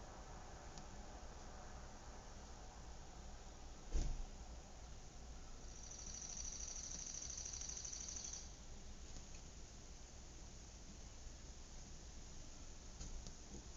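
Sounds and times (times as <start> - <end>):
outdoor suburb ambience: 0.0 - 13.7.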